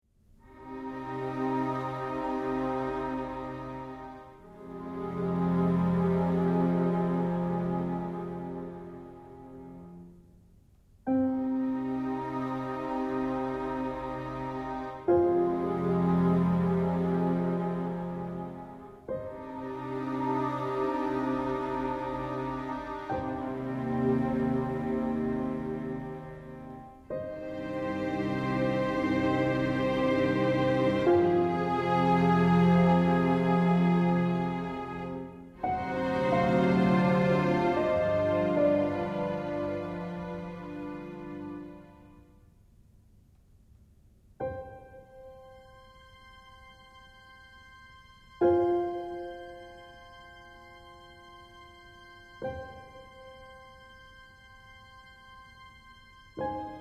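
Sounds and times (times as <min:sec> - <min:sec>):
slow lament music without melody: 0:00.5 - 0:10.3, 0:11.1 - 0:42.3, 0:44.6 - 0:56.7.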